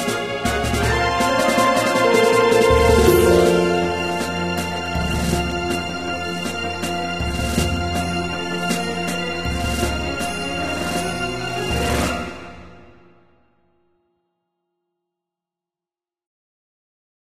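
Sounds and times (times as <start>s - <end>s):
battle music: 0.0s - 11.1s.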